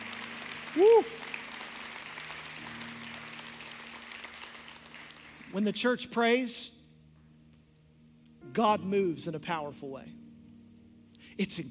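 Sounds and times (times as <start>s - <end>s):
audience clapping hands: 0.0s - 5.8s
speech: 0.7s - 1.2s, 5.6s - 6.8s, 8.6s - 10.2s, 11.4s - 11.6s.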